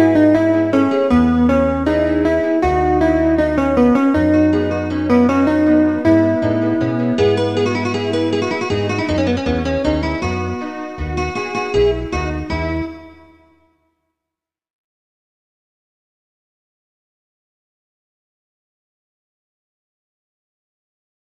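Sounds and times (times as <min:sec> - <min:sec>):
classical music licks: 0:00.0 - 0:13.7.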